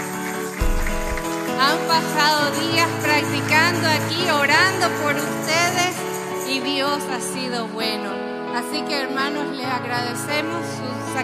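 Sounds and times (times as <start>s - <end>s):
audience applause: 0.0s - 4.7s
speech: 1.9s - 11.2s.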